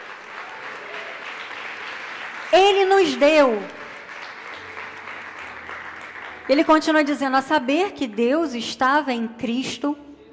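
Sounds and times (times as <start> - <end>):
church congregation clapping for the Lord: 0.0 - 7.3
speech: 2.5 - 3.8, 6.5 - 10.0.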